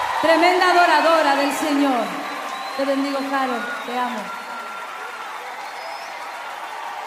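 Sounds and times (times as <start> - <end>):
audience applause: 0.0 - 7.0
speech: 0.2 - 2.2, 2.8 - 4.4.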